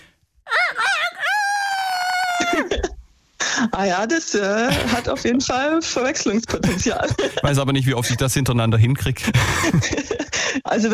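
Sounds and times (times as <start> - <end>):
man imitating a rooster crowing: 0.5 - 2.7
speech: 2.6 - 2.9, 3.6 - 10.9.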